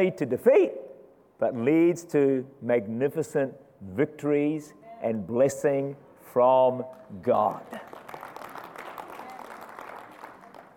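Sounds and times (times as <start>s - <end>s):
speech: 0.0s - 7.9s
audience clapping: 6.8s - 10.7s.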